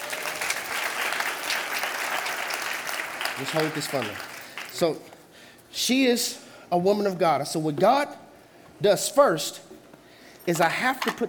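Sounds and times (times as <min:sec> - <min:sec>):
audience applause: 0:00.0 - 0:04.8
speech: 0:03.4 - 0:08.2, 0:08.8 - 0:09.7, 0:10.4 - 0:11.2.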